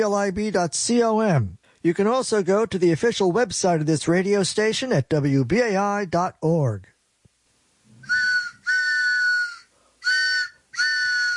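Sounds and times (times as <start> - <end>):
speech: 0.0 - 6.9
train whistle sound effect: 8.0 - 11.3.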